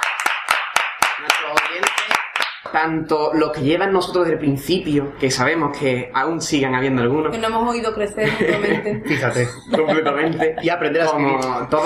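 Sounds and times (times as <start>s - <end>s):
hand claps as applause for listeners: 0.0s - 2.8s
speech: 1.2s - 11.8s
laughter: 8.2s - 11.8s.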